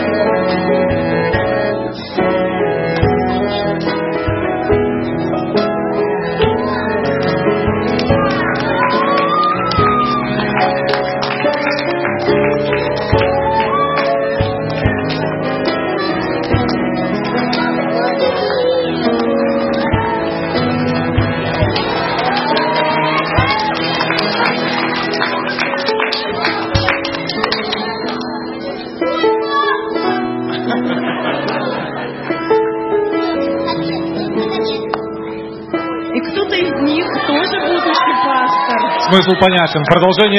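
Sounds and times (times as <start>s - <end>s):
crowd of young voices shouting and cheering: 0.0s - 40.3s
children clapping: 8.0s - 19.9s, 21.4s - 29.7s, 37.0s - 40.3s
laughter: 8.2s - 29.4s, 30.0s - 34.8s, 36.3s - 40.3s
speech: 39.2s - 40.3s.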